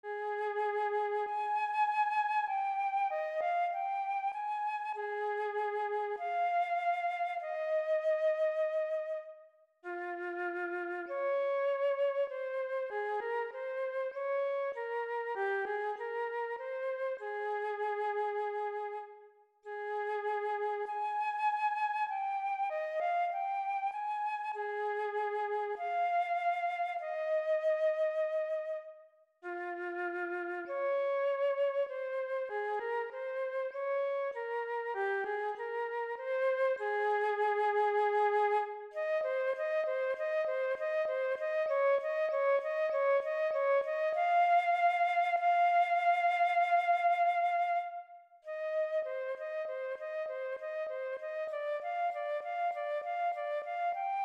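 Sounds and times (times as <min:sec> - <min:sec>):
flute solos in A flat: 0:00.0 - 0:54.2.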